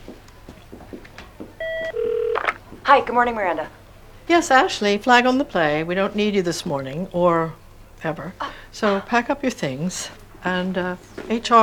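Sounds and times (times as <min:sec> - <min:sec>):
faint sounds: 0:00.0 - 0:11.6
telephone ringing on an outgoing call: 0:01.6 - 0:02.6
speech: 0:02.9 - 0:11.6.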